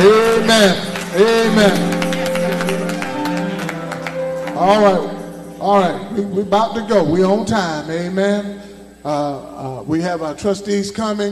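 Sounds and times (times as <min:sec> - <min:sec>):
audience hand clapping in praise: 0:00.0 - 0:05.6
speech: 0:00.6 - 0:01.9, 0:04.6 - 0:11.3.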